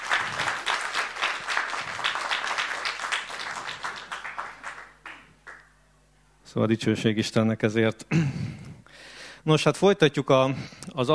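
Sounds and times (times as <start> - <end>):
audience applauding the musicians: 0.0 - 5.7
speech: 6.5 - 8.6, 9.4 - 11.1.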